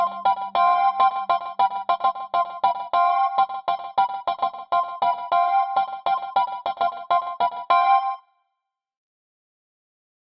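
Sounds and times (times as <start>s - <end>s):
fun 80s music: 0.0s - 8.2s.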